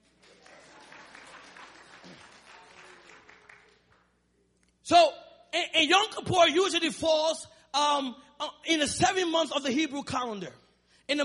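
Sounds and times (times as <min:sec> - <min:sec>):
audience clapping: 0:00.0 - 0:04.2
speech: 0:04.9 - 0:11.2.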